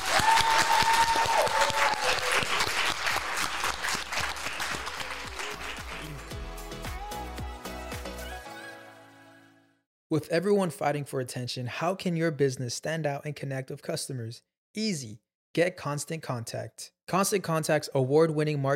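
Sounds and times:
applause: 0.0 - 7.0
speech: 10.1 - 18.7.

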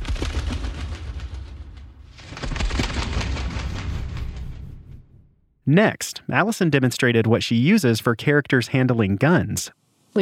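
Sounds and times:
foley moth wings made with toilet paper: 0.0 - 4.8
speech: 5.7 - 10.1.

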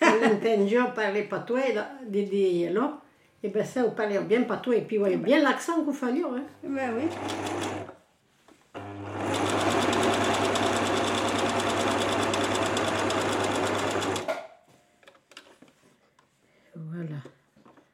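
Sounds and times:
speech: 0.2 - 8.0
sewing machine running: 6.9 - 7.9, 8.8 - 14.3.

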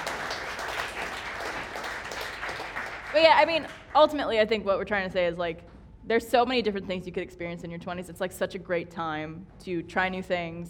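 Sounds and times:
audience applause: 0.0 - 3.8
speech: 3.2 - 10.6.

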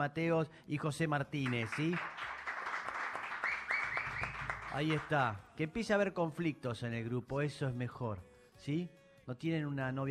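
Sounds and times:
speech: 0.0 - 2.4, 4.7 - 10.0
audience applause: 1.5 - 5.2.

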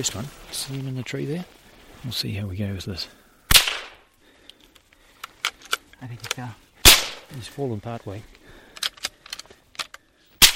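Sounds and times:
faint clicks and rustles: 0.0 - 3.2, 4.1 - 10.3
speech: 0.0 - 3.2, 6.0 - 6.6, 7.3 - 8.4
rifle shot at an Australian brush-tailed possum on a small farm: 3.5 - 4.0, 6.8 - 7.3, 10.4 - 10.5.

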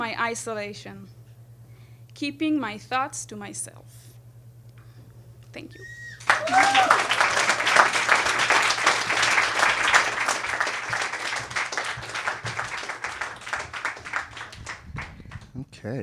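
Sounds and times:
speech: 0.1 - 1.2, 2.2 - 4.0, 5.5 - 7.1
audience applause: 6.1 - 15.5.

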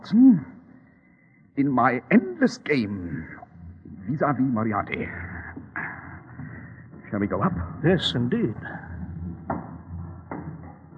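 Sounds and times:
speech: 0.0 - 0.5, 1.6 - 3.4, 4.0 - 5.7, 7.1 - 8.8
wooden stairway creaking: 3.6 - 10.9.

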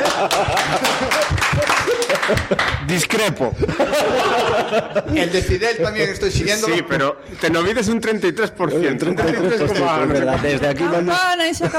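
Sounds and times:
applause: 0.0 - 3.3
laughter: 0.0 - 11.7
speech: 0.2 - 1.2, 2.3 - 11.7.

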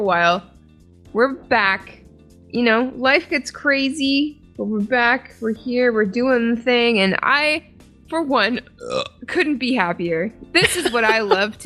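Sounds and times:
speech: 0.0 - 0.5, 1.1 - 11.6
croaky drawn-out burp with speech: 8.8 - 9.2
laughter: 10.6 - 11.6.

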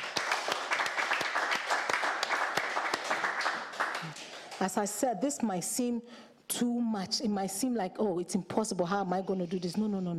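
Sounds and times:
audience clapping: 0.0 - 4.8
speech: 4.6 - 10.1.

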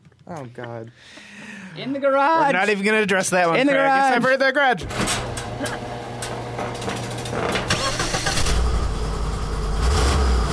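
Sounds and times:
speech: 0.3 - 5.8
big block Ford engine: 5.1 - 10.5.

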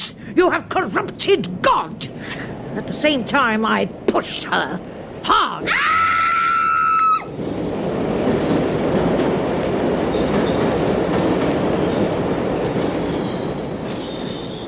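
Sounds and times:
rumble and clatter of rolling train carriages: 0.0 - 14.6
speech: 0.3 - 6.0
train wheels or brakes squealing: 8.9 - 14.6.

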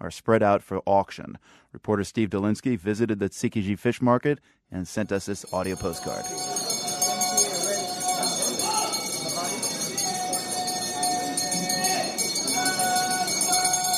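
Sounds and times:
speech: 0.0 - 6.7
loud bells ringing at a fish auction: 5.2 - 13.9
bustle of voices and activity: 5.8 - 13.9.

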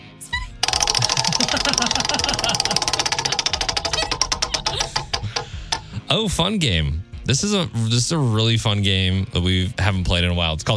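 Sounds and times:
prize wheel being spun, clicking: 0.6 - 6.2
speech: 6.1 - 10.7.

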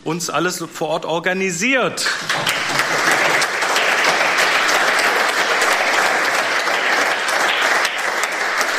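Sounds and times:
speech: 0.0 - 2.9
audience clapping: 2.1 - 8.7.

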